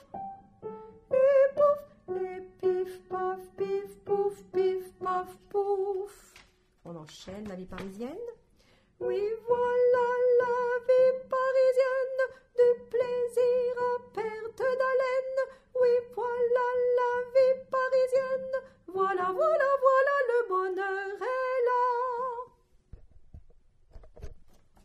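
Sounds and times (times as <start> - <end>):
tenor singing: 1.1 - 6.3, 9.0 - 22.5.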